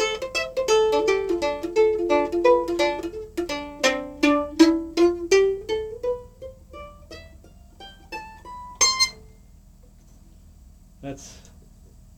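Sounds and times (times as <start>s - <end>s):
mandolin chords: 0.0s - 9.3s.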